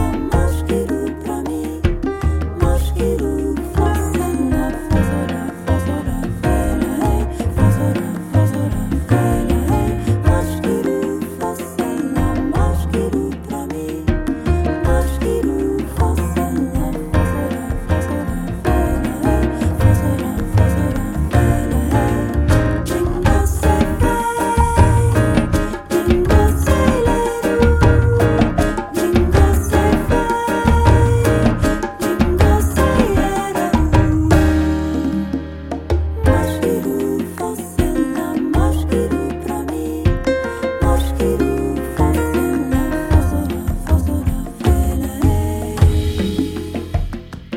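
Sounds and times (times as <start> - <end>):
folk music: 0.1 - 47.3.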